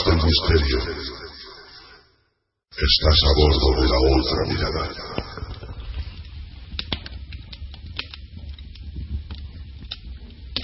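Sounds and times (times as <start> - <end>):
speech: 0.3 - 1.3, 2.8 - 5.3
fire crackling in a fireplace: 4.2 - 10.6.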